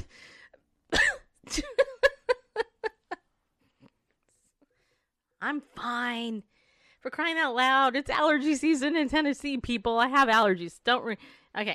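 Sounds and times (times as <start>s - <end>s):
voice imitating a cough: 0.9s - 2.1s
laughter: 1.5s - 3.2s
speech: 5.4s - 11.7s.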